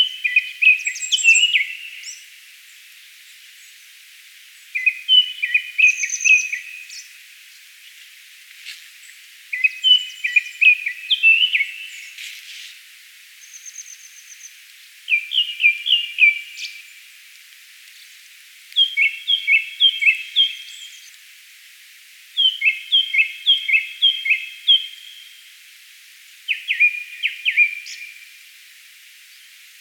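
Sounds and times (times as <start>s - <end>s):
Japanese thrush song: 0.0s - 2.2s, 4.8s - 7.1s, 9.5s - 12.2s, 13.4s - 16.9s, 18.8s - 21.1s, 22.4s - 25.4s, 26.5s - 28.3s.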